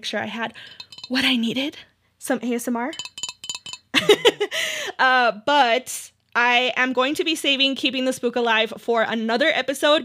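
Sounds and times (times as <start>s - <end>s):
speech: 0.0s - 3.1s, 4.0s - 10.0s
ceramic mug clinking while taking a drink: 0.6s - 1.4s, 2.9s - 4.2s.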